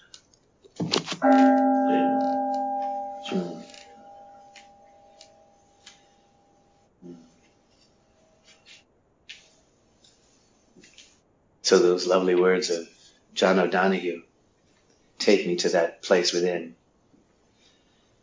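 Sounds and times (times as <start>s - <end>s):
meditation bell ringing: 1.2s - 6.7s
speech: 11.7s - 14.3s, 15.2s - 16.8s.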